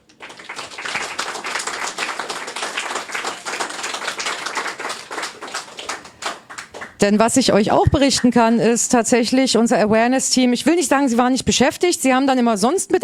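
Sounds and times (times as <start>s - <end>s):
audience applause at a weekend festival: 0.0s - 7.2s
speech: 7.0s - 13.0s.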